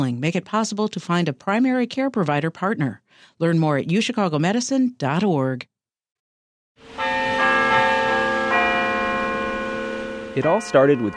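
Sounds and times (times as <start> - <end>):
speech: 0.0 - 5.7, 10.4 - 11.1
church bells ringing: 6.8 - 11.1.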